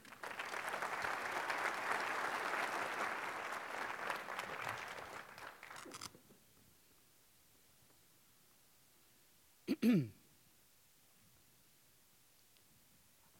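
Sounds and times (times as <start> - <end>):
audience applause welcoming a speaker at a UNESCO panel address: 0.0 - 6.0.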